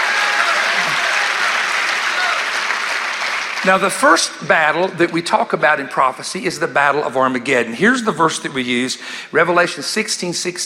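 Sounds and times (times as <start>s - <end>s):
audience clapping hands: 0.0s - 4.9s
speech: 3.6s - 10.6s.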